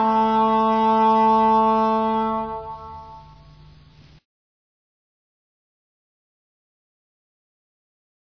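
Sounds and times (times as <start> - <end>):
English horn: 0.0 - 3.9.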